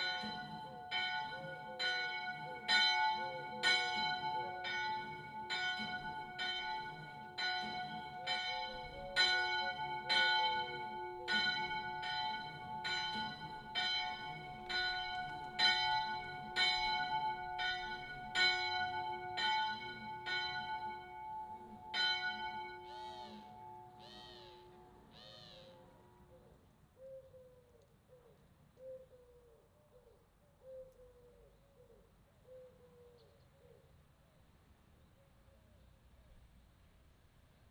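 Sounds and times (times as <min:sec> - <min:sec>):
Angelus bells ringing: 0:00.0 - 0:25.2.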